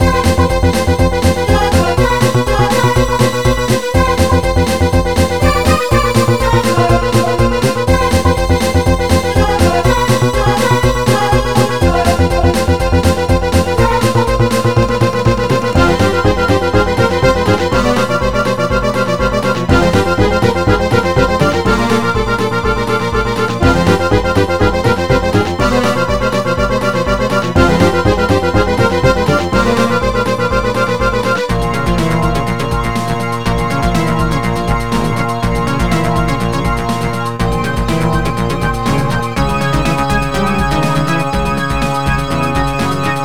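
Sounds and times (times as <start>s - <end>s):
background music: 0.0s - 43.2s.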